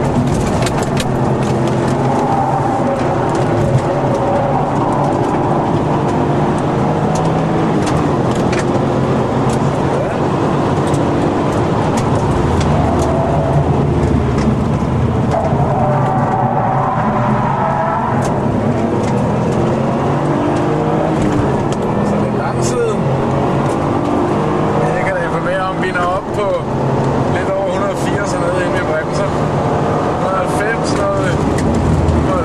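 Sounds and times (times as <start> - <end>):
Toyota Supra engine: 0.0 - 32.4.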